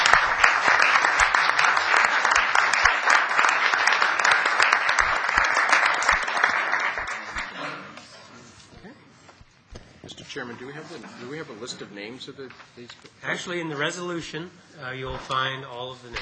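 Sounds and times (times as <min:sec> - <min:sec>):
round of applause: 0:00.0 - 0:08.1
speech: 0:10.6 - 0:16.2.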